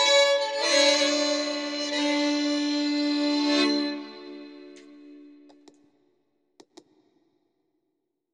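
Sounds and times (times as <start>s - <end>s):
Swedish bagpipe playing a polska: 0.0s - 5.4s.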